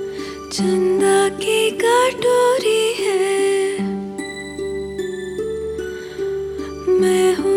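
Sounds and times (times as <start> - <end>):
woman singing: 0.1 - 4.4, 5.9 - 7.5.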